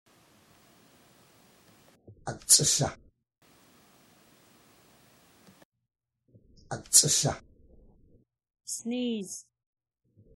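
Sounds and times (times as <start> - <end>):
person sneezing: 2.3 - 2.9, 6.7 - 7.4.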